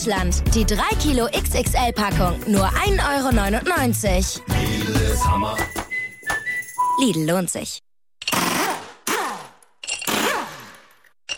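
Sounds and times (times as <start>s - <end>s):
speech: 0.0s - 5.8s, 7.0s - 7.9s
pneumatic impact wrench fitting new car tyres: 8.2s - 11.3s.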